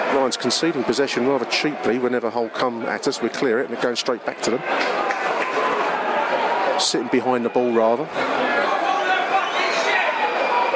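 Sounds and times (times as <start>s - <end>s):
football crowd reacting: 0.0s - 10.7s
speech: 0.2s - 5.1s, 6.8s - 8.8s.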